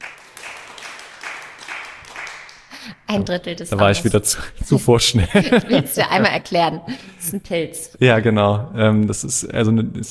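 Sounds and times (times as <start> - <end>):
audience clapping: 0.0 - 2.9
speech: 2.8 - 10.0
laughter: 3.8 - 7.2.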